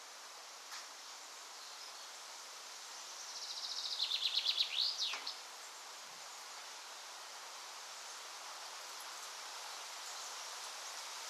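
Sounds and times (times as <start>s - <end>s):
steady hiss: 0.0s - 11.2s.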